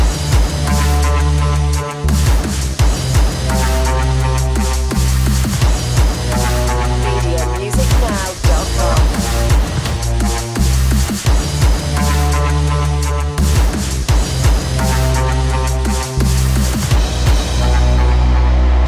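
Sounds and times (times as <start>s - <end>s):
bass drums: 0.0s - 18.8s.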